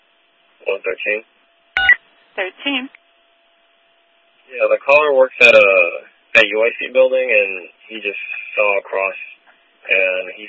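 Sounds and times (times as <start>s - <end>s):
speech: 0.7s - 1.4s, 2.4s - 3.0s, 4.5s - 10.4s
telephone keypad touch-tone beeps: 1.8s - 2.0s.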